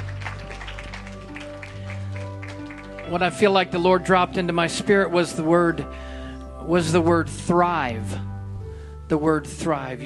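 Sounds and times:
audience clapping: 0.0s - 3.8s
speech: 3.1s - 8.3s, 9.1s - 10.0s.

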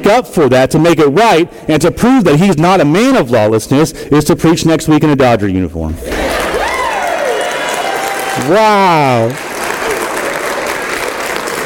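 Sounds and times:
speech: 0.0s - 6.4s, 8.4s - 9.5s
loud sustained applause from a large crowd: 6.0s - 11.6s.

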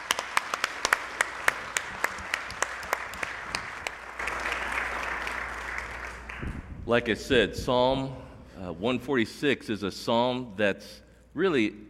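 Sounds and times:
audience applause: 0.0s - 6.7s
speech: 6.9s - 11.8s.

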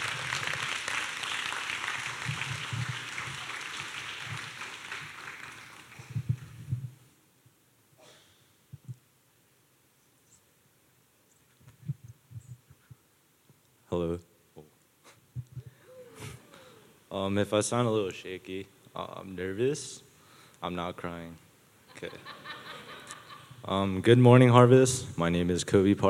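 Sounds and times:
church congregation applauding: 0.0s - 6.8s
speech: 14.0s - 14.3s, 17.2s - 20.0s, 20.6s - 21.4s, 22.0s - 22.4s, 23.7s - 26.0s
laughter: 21.9s - 23.6s.

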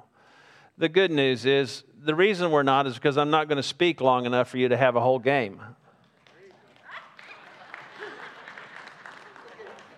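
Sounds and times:
speech: 0.8s - 5.8s
audience clapping: 6.0s - 9.9s
scattered voices and laughter: 6.4s - 9.9s.

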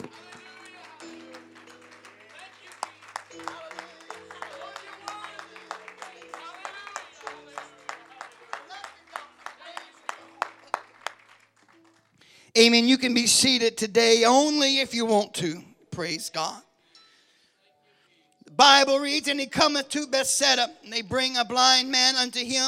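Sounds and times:
sustained organ-like chords: 0.0s - 11.4s
audience clapping hands in praise: 0.0s - 12.3s
speech: 12.6s - 16.7s, 18.6s - 22.6s.

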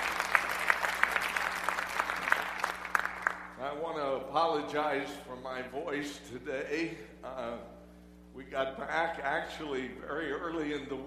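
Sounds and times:
audience applause: 0.0s - 3.6s
speech: 4.4s - 7.7s, 8.4s - 11.0s.

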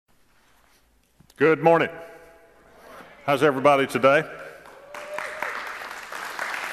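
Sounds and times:
speech: 1.4s - 2.1s, 3.2s - 4.4s
audience clapping: 4.4s - 6.7s.

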